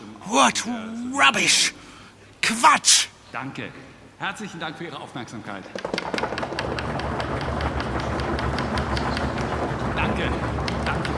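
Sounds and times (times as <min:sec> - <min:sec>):
speech: 0:00.3 - 0:01.8, 0:02.5 - 0:06.7
crowd rapping knuckles on wooden desks as applause: 0:05.8 - 0:11.1.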